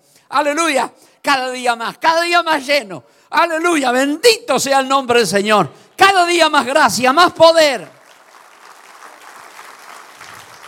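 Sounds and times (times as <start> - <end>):
speech: 0.3 - 8.0
church congregation applauding during a sermon: 7.6 - 10.6.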